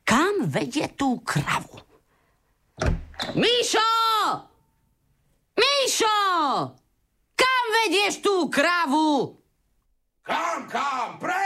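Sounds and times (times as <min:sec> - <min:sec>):
speech: 0:00.4 - 0:01.8, 0:03.3 - 0:04.5, 0:05.6 - 0:06.8, 0:07.7 - 0:09.4, 0:10.3 - 0:11.4
door slamming: 0:02.8 - 0:03.5.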